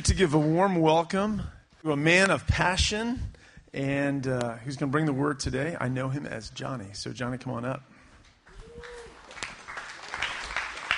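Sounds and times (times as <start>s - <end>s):
speech: 0.1s - 7.9s
audience applause: 8.5s - 10.9s.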